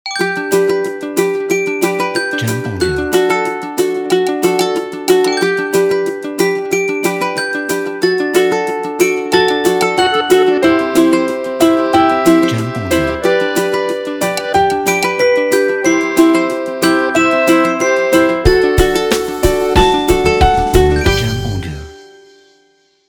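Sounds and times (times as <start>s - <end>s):
sunny folk music intro: 0.2s - 22.3s.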